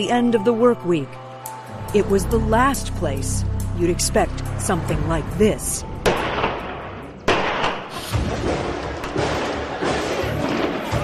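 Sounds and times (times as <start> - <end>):
speech: 0.0 - 1.2, 1.9 - 5.9
explosions during mall attack: 6.0 - 10.8
gunshots during mall attack: 6.0 - 10.9.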